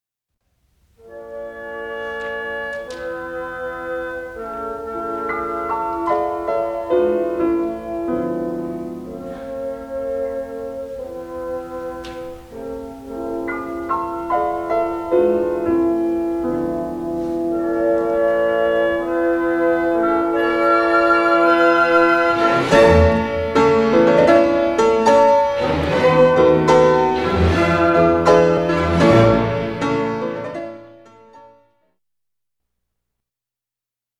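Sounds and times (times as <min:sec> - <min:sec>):
piano and orchestra concerto vivace: 0:00.8 - 0:31.5.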